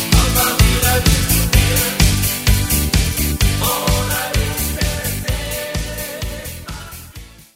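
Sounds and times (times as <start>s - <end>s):
choir singing playback: 0.1s - 2.1s, 3.4s - 7.1s.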